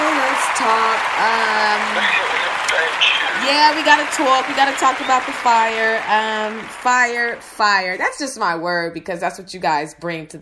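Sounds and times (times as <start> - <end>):
laughter: 0.0 - 7.2
whooping and cheering voices: 0.0 - 7.9
crowd applauding: 0.0 - 8.0
speech: 0.6 - 10.4.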